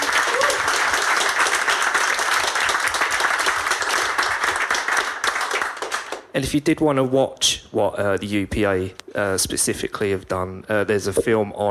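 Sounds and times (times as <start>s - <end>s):
audience applause: 0.0s - 6.3s
speech: 6.4s - 11.7s.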